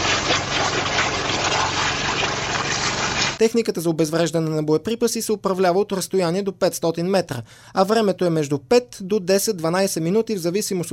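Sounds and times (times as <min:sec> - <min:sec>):
abrasive waterjet cutter bubbling while cutting shell: 0:00.0 - 0:03.4
speech: 0:03.4 - 0:10.9.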